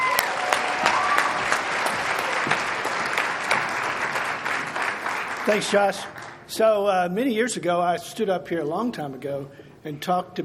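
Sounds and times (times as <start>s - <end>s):
crowd whooping and cheering: 0.0s - 3.7s
crowd applauding: 0.0s - 6.5s
speech: 5.5s - 10.4s.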